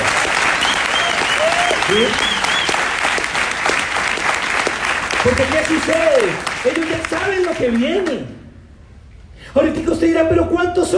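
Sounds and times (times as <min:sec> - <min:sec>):
audience applause: 0:00.0 - 0:08.2
speech: 0:01.9 - 0:02.3, 0:05.2 - 0:08.4, 0:09.5 - 0:10.9.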